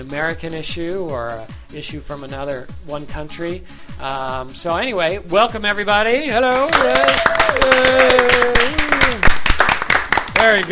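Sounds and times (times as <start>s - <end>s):
speech: 0.0s - 9.3s, 10.4s - 10.7s
hand clapping close to microphone: 6.5s - 10.7s.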